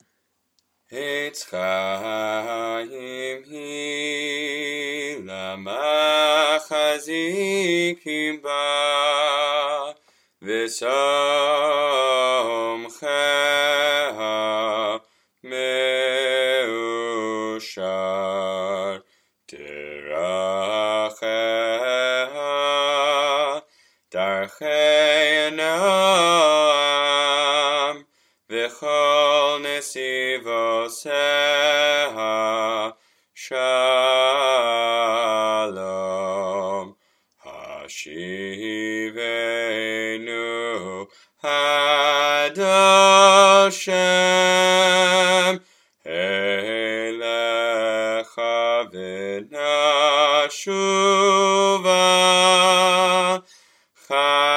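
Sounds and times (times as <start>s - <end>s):
cantorial singing: 0.9s - 54.5s.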